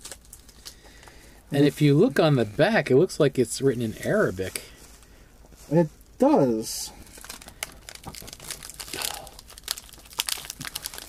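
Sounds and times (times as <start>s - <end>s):
food wrapper crinkling: 0.0s - 1.3s, 7.0s - 11.0s
speech: 1.5s - 4.7s, 5.7s - 7.0s.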